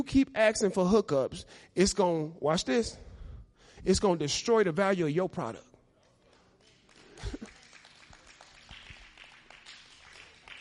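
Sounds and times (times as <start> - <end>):
speech: 0.0 - 3.1, 3.8 - 5.7
faint audience clapping: 6.0 - 10.5.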